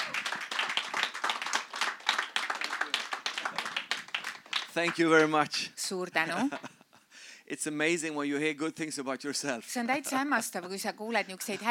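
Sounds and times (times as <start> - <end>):
audience applause welcoming a speaker to the stage: 0.0 - 5.4
speech: 4.8 - 6.7, 7.5 - 11.6.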